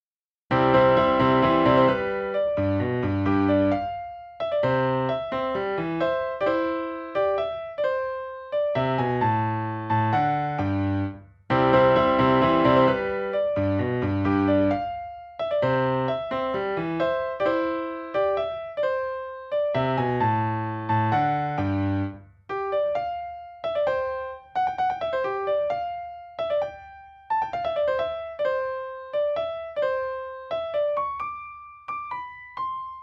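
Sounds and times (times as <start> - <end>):
minuet in piano reduction: 0.5 - 33.0.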